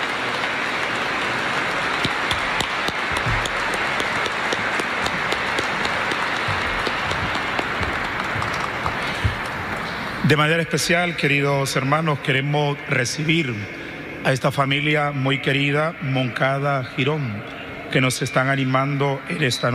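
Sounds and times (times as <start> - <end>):
applause: 0.0 - 10.3
speech: 10.3 - 19.7.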